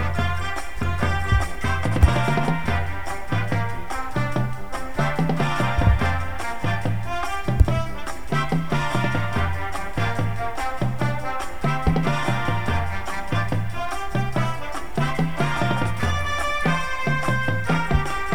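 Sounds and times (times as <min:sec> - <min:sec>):
bass with music: 0:00.0 - 0:18.3
drumline drumming: 0:00.0 - 0:18.3.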